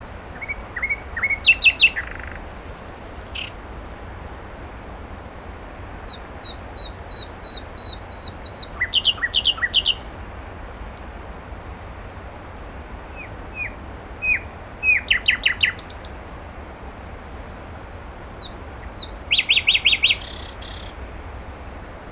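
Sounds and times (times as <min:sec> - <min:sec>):
common nightingale song: 0:00.0 - 0:03.8, 0:05.6 - 0:10.3, 0:13.0 - 0:16.3, 0:17.8 - 0:21.2.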